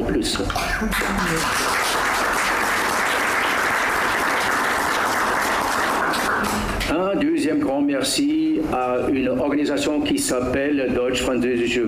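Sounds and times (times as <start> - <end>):
speech: 0.2 - 2.0, 6.9 - 11.8
audience applause: 0.9 - 6.8.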